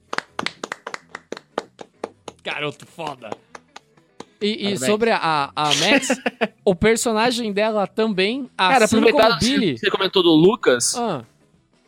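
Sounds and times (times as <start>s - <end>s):
hand clapping: 0.0s - 4.4s
speech: 2.4s - 3.5s, 4.4s - 11.3s
laughter: 5.6s - 6.6s.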